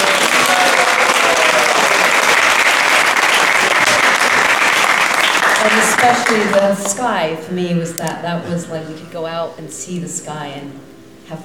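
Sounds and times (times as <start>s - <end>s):
audience applause at a Krishna devotional talk: 0.0s - 6.8s
speech: 6.0s - 11.4s.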